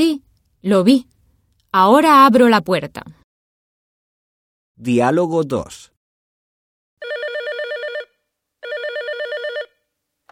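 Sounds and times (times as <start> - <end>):
speech: 0.0 - 1.1, 1.7 - 3.2, 4.8 - 5.9
telephone ringing: 7.0 - 10.3.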